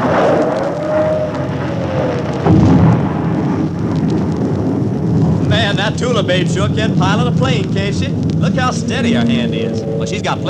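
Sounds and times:
volcanic eruption rumble: 0.0s - 10.4s
volcanic eruption explosive blast: 1.4s - 10.4s
speech: 5.9s - 10.4s.

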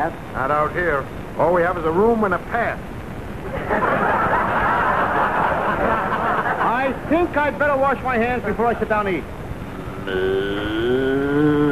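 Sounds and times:
speech: 0.0s - 4.1s, 6.8s - 9.4s, 10.0s - 11.6s
laughter: 3.4s - 7.1s
cow mooing: 9.8s - 11.6s.

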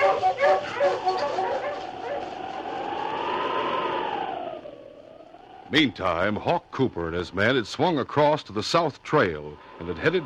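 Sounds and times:
husky whimpering: 0.0s - 2.4s
sled huskies barking: 0.0s - 4.5s
speech: 5.7s - 10.2s.

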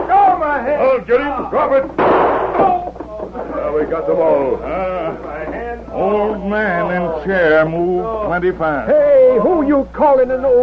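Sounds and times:
speech: 0.7s - 2.4s, 3.7s - 10.6s
gunshot: 2.0s - 2.8s.

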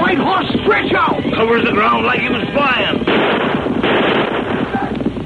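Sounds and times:
speech: 0.2s - 3.0s
gunshots fired at riders: 2.9s - 5.0s.

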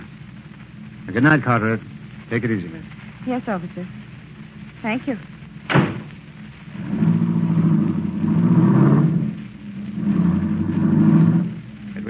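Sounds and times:
speech: 1.1s - 4.0s, 4.8s - 5.4s
car engine starting and revving as it pulls away: 6.7s - 12.0s.

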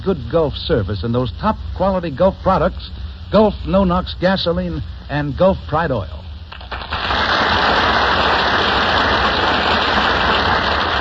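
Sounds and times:
speech: 0.0s - 6.2s
audience applause: 6.7s - 10.9s.

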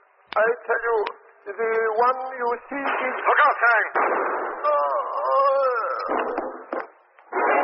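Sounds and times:
speech: 0.4s - 4.8s, 6.1s - 6.8s
gunshot: 2.8s - 4.8s, 6.1s - 7.5s.

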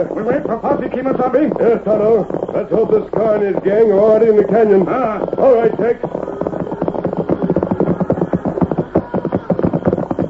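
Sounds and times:
speech: 0.0s - 6.4s
large cattle herd moving: 0.0s - 10.2s.

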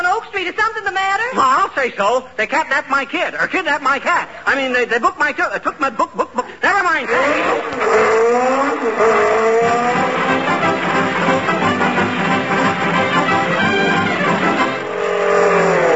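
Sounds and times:
speech: 0.4s - 10.0s
jeep tires squealing: 7.0s - 15.9s
jeep driving past: 7.1s - 11.6s.

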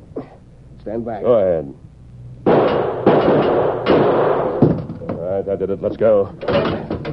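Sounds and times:
speech: 0.8s - 1.8s, 5.3s - 6.9s
revolver shots blasting a lock: 2.5s - 5.0s.

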